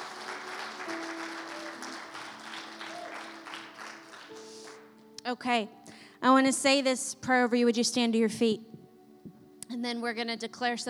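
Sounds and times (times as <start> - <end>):
crowd applauding: 0.0 - 5.0
speech: 5.3 - 8.7, 9.8 - 10.8.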